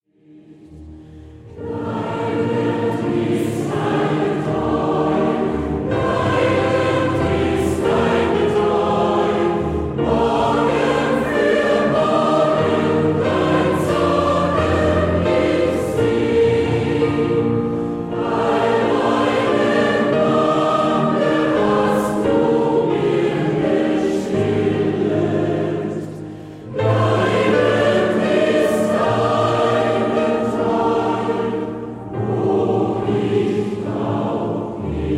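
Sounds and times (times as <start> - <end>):
choir singing: 0.1 - 35.1.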